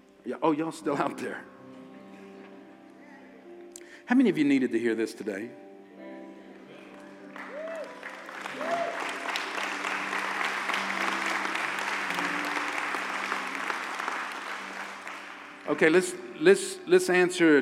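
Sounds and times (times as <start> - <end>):
speech: 0.2 - 1.5, 4.1 - 5.6, 15.7 - 17.6
crowd applauding: 6.9 - 16.5.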